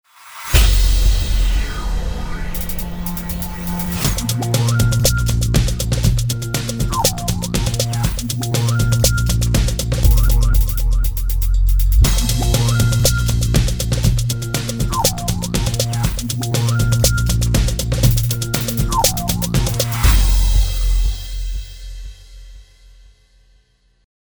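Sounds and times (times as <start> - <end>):
warbly music bed: 0.5 - 22.2.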